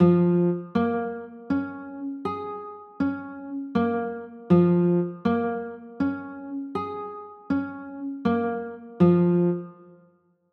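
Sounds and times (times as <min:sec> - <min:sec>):
B flat minor chords: 0:00.0 - 0:10.0.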